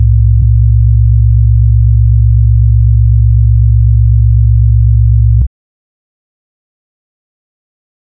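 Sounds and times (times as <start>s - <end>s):
sine wave tones from 64 Hz to 128 Hz: 0.0s - 5.5s.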